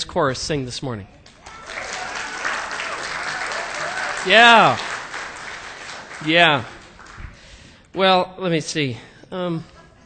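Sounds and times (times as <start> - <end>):
speech: 0.0 - 1.2, 4.2 - 4.9, 6.2 - 6.7, 7.9 - 9.7
audience applause: 1.3 - 7.3.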